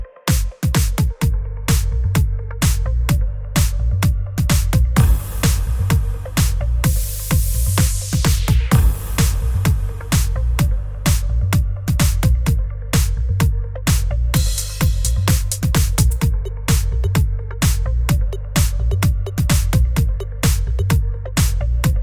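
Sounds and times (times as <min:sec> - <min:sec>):
music beat: 0:00.0 - 0:22.0.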